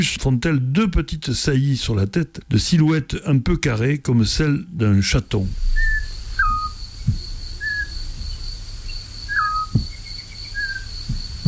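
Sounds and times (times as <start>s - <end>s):
speech: 0.0s - 6.0s
low rumbling background: 5.4s - 8.4s
high insect-like hum: 5.4s - 11.4s
male and female birds calling back and forth: 5.6s - 11.4s.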